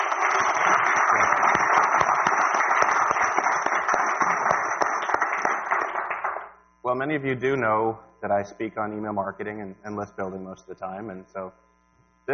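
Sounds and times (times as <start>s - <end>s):
audience clapping: 0.0s - 6.6s
speech: 7.0s - 11.7s.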